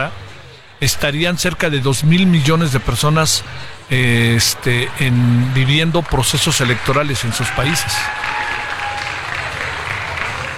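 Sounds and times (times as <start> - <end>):
speech: 0.8 - 8.3
applause: 5.0 - 10.5.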